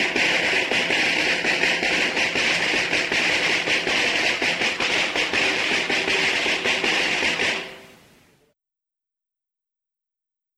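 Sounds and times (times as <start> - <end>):
folk rhythm from Pesquera de Duero: 0.0 - 8.2.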